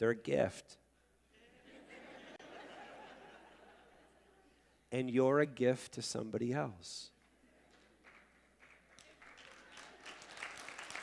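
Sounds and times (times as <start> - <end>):
speech: 0.0 - 0.8, 4.9 - 7.1
laughter: 1.3 - 4.7
audience clapping: 7.7 - 11.0.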